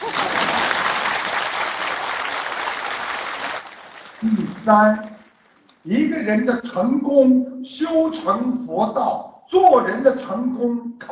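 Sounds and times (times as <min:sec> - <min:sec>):
crowd applause: 0:00.0 - 0:04.5
speech: 0:04.2 - 0:05.1, 0:05.8 - 0:11.1.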